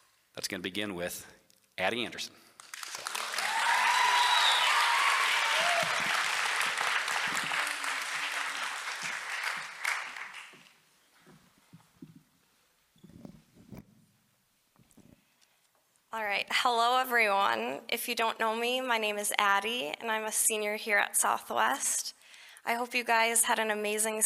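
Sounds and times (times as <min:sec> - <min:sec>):
speech: 0:00.4 - 0:03.1, 0:16.6 - 0:24.2
audience applause welcoming a student speaker: 0:02.6 - 0:10.8
whistles: 0:03.8 - 0:06.0.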